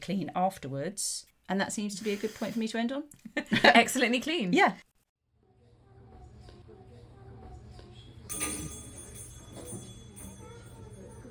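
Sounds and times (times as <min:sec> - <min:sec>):
speech: 0:00.0 - 0:04.9
bells ringing on the dice tower: 0:08.3 - 0:11.2.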